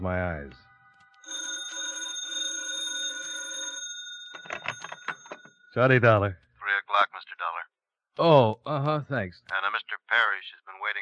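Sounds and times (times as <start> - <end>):
speech: 0.0 - 0.7, 5.8 - 7.6, 8.2 - 10.9
telephone ringing: 1.0 - 5.7.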